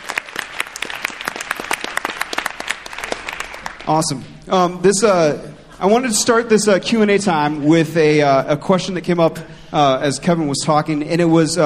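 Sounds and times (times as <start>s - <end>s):
audience applause: 0.0s - 4.1s
speech: 3.9s - 11.6s.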